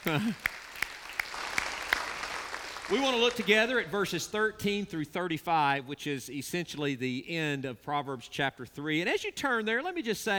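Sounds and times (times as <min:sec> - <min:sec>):
speech: 0:00.0 - 0:00.7, 0:02.9 - 0:10.3
congregation applause for a visitor at a church service: 0:00.0 - 0:04.0.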